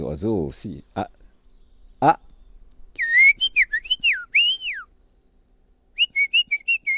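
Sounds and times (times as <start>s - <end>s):
speech: 0.1s - 1.2s, 2.0s - 2.3s
person whistling an imitation of a robin's song: 3.0s - 5.1s, 6.0s - 6.9s.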